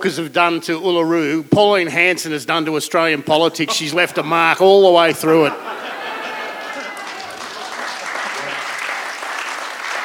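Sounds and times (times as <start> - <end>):
speech: 0.0 - 5.8
laughter: 3.6 - 9.2
audience applause: 5.8 - 10.0.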